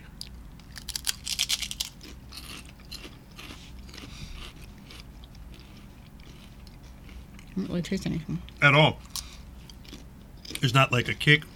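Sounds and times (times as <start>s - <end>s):
crunching on Wise potato chips: 0.6s - 7.6s
speech: 7.6s - 9.1s, 10.6s - 11.5s.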